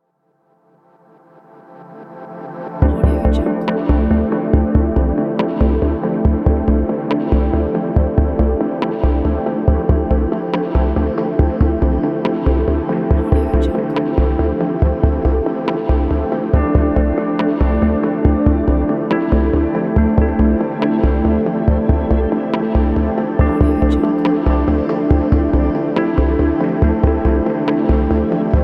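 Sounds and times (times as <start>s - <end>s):
deep ambient background: 1.2s - 28.6s.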